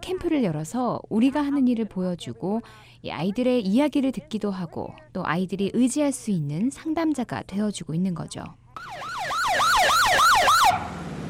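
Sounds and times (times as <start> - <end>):
speech: 0.0 - 9.2
police motorcycle siren: 8.8 - 11.2.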